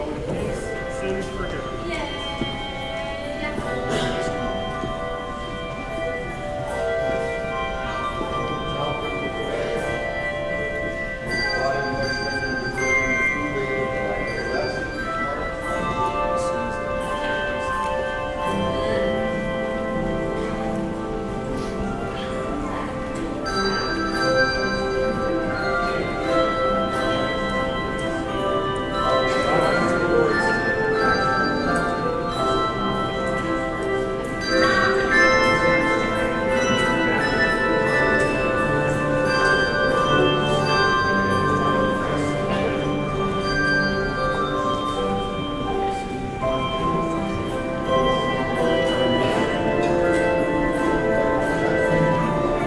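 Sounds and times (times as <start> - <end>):
handbells: 0.0 - 52.6.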